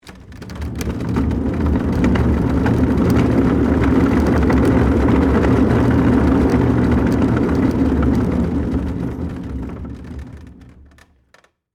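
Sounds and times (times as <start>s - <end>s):
wooden work table on wheels rolling and pushed: 0.0s - 11.5s.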